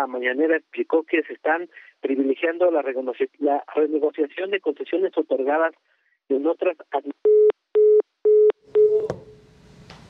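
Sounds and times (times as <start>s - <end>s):
speech: 0.0s - 7.3s
busy signal beeps after a dropped phone call: 7.3s - 9.1s.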